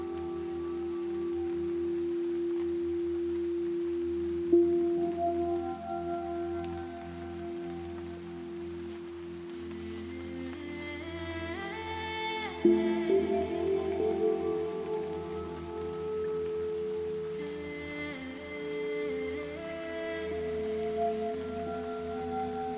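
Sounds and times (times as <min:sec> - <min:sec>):
ringing bowl-like tone in ambient music: 0:00.0 - 0:10.2, 0:12.6 - 0:22.7
bright shimmering notes: 0:00.0 - 0:22.7
soft rain: 0:00.0 - 0:22.7.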